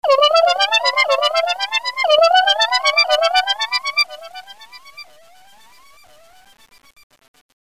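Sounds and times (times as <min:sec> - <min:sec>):
SMS ringtones: 0:00.0 - 0:04.5.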